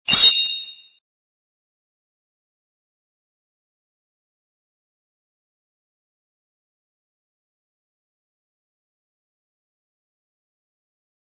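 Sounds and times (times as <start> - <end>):
beep: 0.1 - 1.0.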